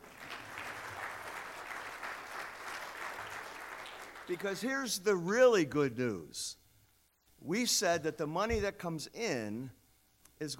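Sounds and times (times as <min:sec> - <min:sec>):
audience applause: 0:00.0 - 0:04.4
speech: 0:04.3 - 0:06.6, 0:07.4 - 0:09.8, 0:10.4 - 0:10.5.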